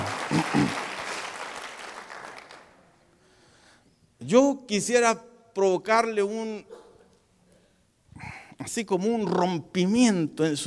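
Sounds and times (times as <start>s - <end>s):
audience applause: 0.0s - 2.8s
speech: 4.3s - 6.8s, 8.6s - 10.6s.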